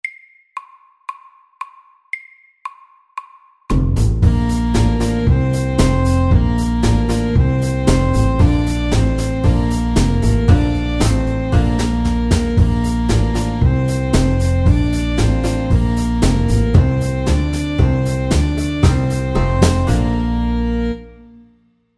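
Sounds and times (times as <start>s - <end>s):
medium square dance music: 3.7s - 21.2s.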